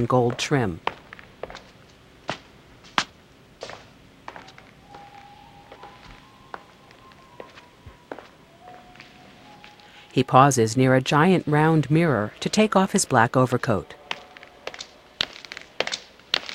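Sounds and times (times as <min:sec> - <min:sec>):
speech: 0:00.0 - 0:00.9, 0:10.2 - 0:14.0
heel footsteps crossing a sleek Art Deco lobby: 0:00.2 - 0:09.8
faint sustained tone: 0:04.3 - 0:16.2.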